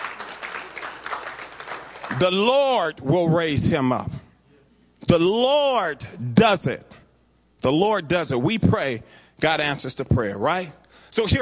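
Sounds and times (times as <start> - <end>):
audience applause: 0.0 - 2.4
speech: 2.1 - 4.2, 5.1 - 6.9, 7.6 - 11.4.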